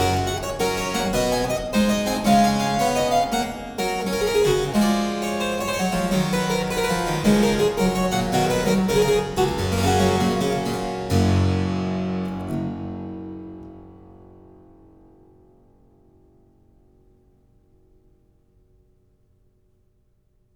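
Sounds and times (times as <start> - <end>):
harpsichord suite in G minor: 0.0 - 13.6.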